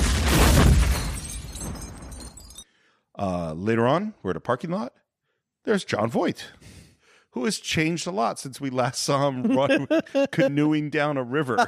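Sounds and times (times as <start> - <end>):
ambulance explosion: 0.0 - 2.4
speech: 3.2 - 5.0, 5.6 - 6.8, 7.4 - 11.6
laughter: 9.3 - 10.8.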